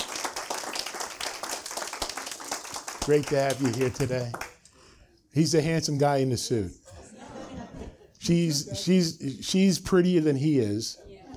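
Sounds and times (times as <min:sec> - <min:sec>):
audience applause welcoming two guests: 0:00.0 - 0:04.6
speech: 0:03.1 - 0:04.5, 0:05.3 - 0:06.8, 0:08.3 - 0:11.0
laughter: 0:06.8 - 0:08.8.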